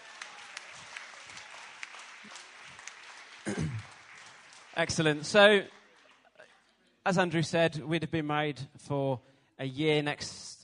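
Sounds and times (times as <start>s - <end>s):
crowd applauding: 0.0s - 6.7s
speech: 3.4s - 3.9s, 4.8s - 5.8s, 7.1s - 10.5s.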